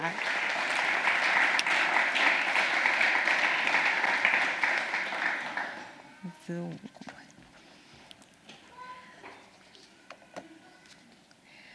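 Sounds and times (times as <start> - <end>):
crowd applause: 0.0 - 6.0.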